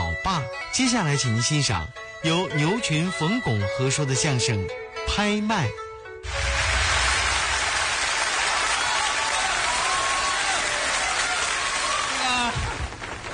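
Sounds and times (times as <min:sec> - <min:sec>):
speech: 0:00.2 - 0:06.5
audience applause: 0:06.3 - 0:13.3.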